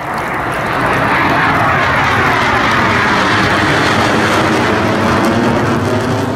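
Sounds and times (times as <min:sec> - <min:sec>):
Boeing EA-18G Growler jet roaring overhead: 0:00.0 - 0:06.3.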